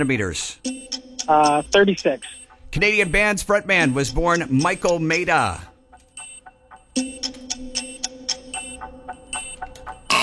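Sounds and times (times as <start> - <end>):
speech: 0.0 - 5.7, 7.0 - 7.4
rapid ticking clicks: 0.0 - 10.2
quiz game buzzer: 10.1 - 10.2.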